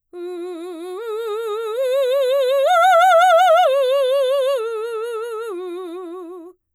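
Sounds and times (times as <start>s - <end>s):
voice singing slow loud arpeggios on u: 0.2s - 6.5s.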